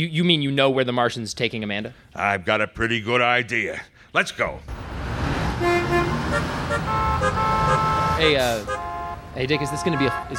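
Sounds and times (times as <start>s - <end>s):
speech: 0.0s - 4.9s, 6.3s - 10.3s
steady roar of street traffic: 4.7s - 10.3s
car horns honking in traffic: 4.8s - 10.3s.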